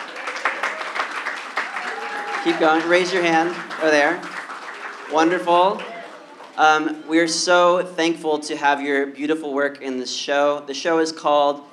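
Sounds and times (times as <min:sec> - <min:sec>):
crowd audience clapping: 0:00.0 - 0:06.8
speech: 0:02.4 - 0:04.3, 0:05.1 - 0:05.9, 0:06.6 - 0:11.7.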